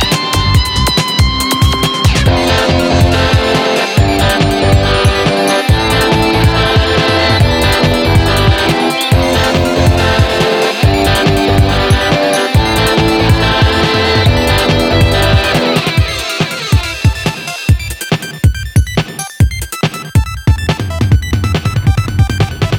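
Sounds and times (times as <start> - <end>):
big beat music: 0.0 - 22.7.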